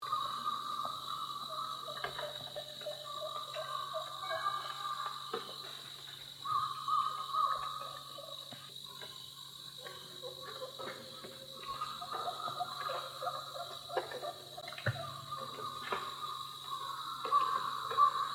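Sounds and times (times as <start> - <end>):
wild turkeys calling at a roost in the morning: 0.0 - 18.3.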